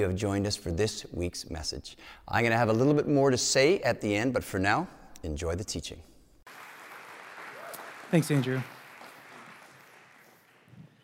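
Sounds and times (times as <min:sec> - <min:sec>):
speech: 0:00.0 - 0:06.1, 0:08.1 - 0:08.8
crowd applause and cheering: 0:06.5 - 0:11.0.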